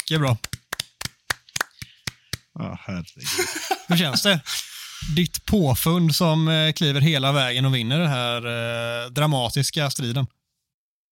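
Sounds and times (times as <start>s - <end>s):
few people clapping: 0.0s - 2.5s
speech: 0.1s - 0.6s, 2.6s - 10.4s
laughter: 3.2s - 5.2s.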